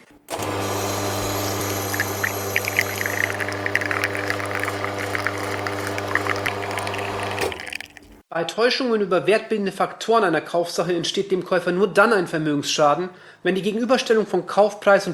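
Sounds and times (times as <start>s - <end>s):
machine hum: 0.3s - 8.2s
coffee crema pouring into a cup: 0.4s - 8.2s
speech: 8.4s - 15.1s.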